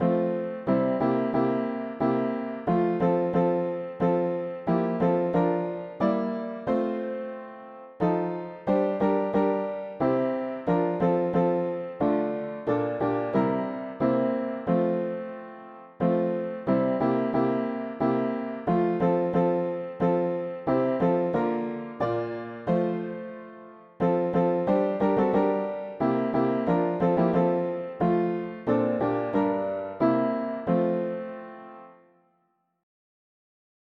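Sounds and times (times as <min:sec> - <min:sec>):
mono piano: 0:00.0 - 0:32.6.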